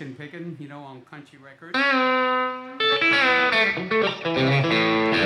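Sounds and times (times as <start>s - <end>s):
guitar: 1.7s - 5.2s.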